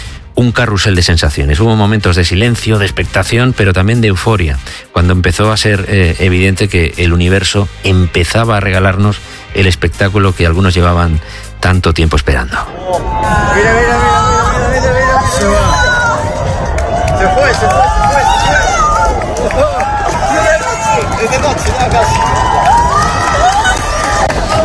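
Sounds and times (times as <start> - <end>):
speech: 0.4 - 15.6, 19.4 - 20.1, 21.2 - 22.7
crowd shouting outdoors at the Torre de Hércules in La Coruña: 12.7 - 24.6.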